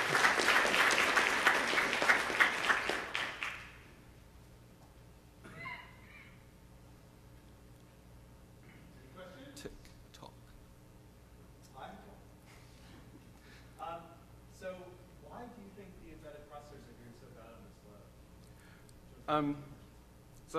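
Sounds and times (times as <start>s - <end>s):
audience clapping: 0.0s - 3.9s.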